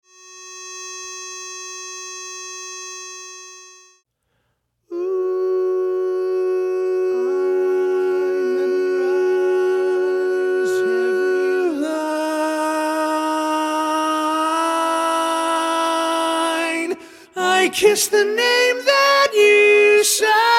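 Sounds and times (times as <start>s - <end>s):
predominant baritone voice: 4.9s - 20.5s.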